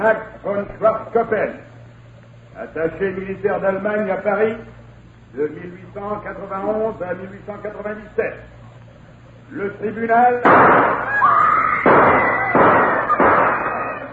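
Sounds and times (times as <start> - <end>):
speech: 0.0 - 1.7, 2.6 - 8.6, 9.5 - 11.4
gunshots in a courtroom: 10.4 - 11.1, 11.8 - 14.0.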